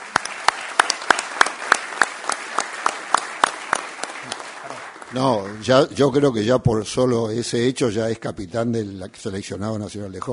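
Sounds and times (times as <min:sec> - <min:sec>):
applause: 0:00.0 - 0:06.4
speech: 0:05.1 - 0:10.3.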